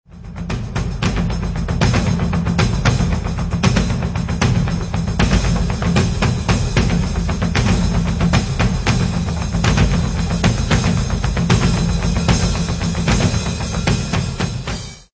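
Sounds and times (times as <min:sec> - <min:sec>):
taiko drums: 0:00.1 - 0:15.1.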